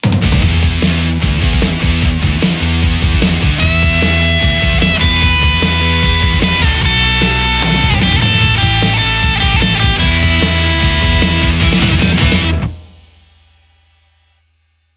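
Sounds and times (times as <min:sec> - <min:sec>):
Les Paul electric guitar: 0:00.0 - 0:12.8.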